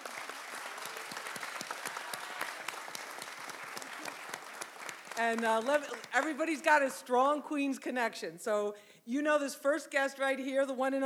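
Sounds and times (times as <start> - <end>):
audience applause: 0.0 - 6.3
speech: 5.2 - 11.0.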